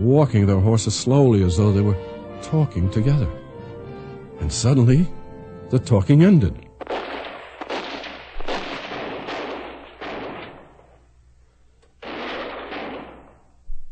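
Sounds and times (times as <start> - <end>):
speech: 0.0 - 3.4, 4.4 - 6.6
Colt's revolver fired at night: 6.8 - 11.1, 12.0 - 13.6.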